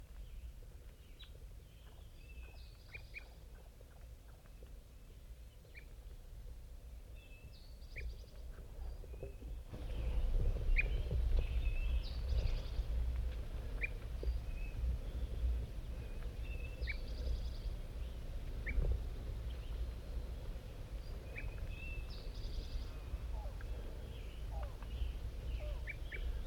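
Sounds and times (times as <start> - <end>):
wild birds calling: 8.9 - 26.4.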